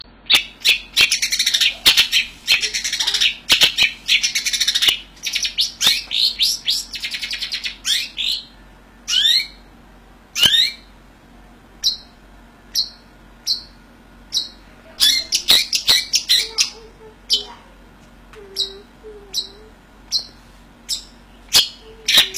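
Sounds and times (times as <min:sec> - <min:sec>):
long-tailed shrike harsh chattering and whistles: 0:00.3 - 0:08.5, 0:09.1 - 0:09.7, 0:10.4 - 0:10.9, 0:11.8 - 0:12.1, 0:12.7 - 0:17.6, 0:18.5 - 0:22.3.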